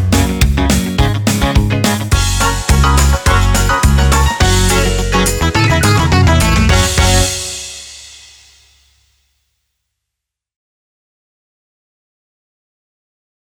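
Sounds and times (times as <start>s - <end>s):
rhythm solo: 0.0s - 8.5s.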